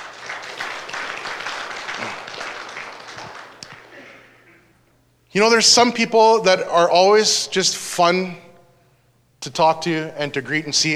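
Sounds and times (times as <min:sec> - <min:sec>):
audience applause welcoming a speaker to the stage: 0:00.0 - 0:04.0
speech: 0:05.3 - 0:08.4, 0:09.4 - 0:10.9.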